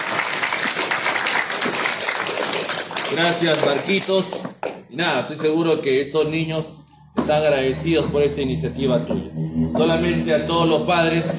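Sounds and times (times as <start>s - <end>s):
applause: 0.0s - 4.8s
speech: 3.1s - 11.3s.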